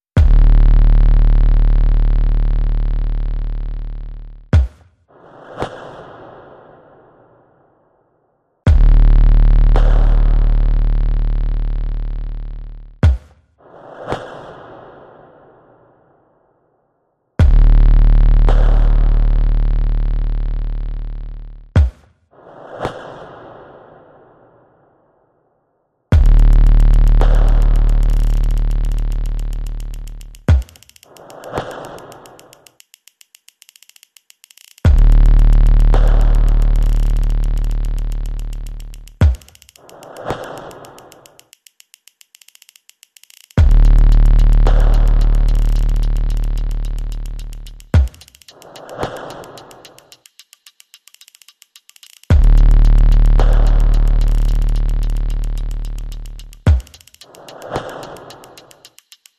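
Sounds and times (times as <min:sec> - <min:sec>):
percussion: 0:00.0 - 0:00.6, 0:04.5 - 0:05.0, 0:08.7 - 0:10.5, 0:13.0 - 0:14.5, 0:17.4 - 0:19.3, 0:21.8 - 0:23.2, 0:26.1 - 0:59.3
bass: 0:00.1 - 0:04.8, 0:08.7 - 0:13.2, 0:17.4 - 0:22.0, 0:26.1 - 0:30.6, 0:34.8 - 0:39.3, 0:43.6 - 0:48.0, 0:52.3 - 0:56.8.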